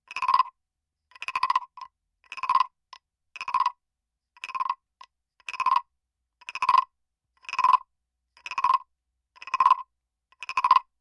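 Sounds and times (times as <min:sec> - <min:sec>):
Japanese frog-shaped wooden temple block: 0:00.0 - 0:03.8, 0:04.4 - 0:10.9.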